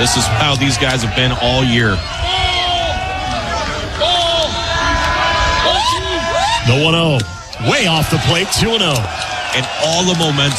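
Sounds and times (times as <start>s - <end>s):
man commentating on a college baseball game: 0.0s - 2.0s, 6.6s - 10.5s
speech: 0.0s - 2.5s, 6.7s - 10.5s
crowd cheering at a Nebraska Huskers college baseball game: 0.0s - 10.5s.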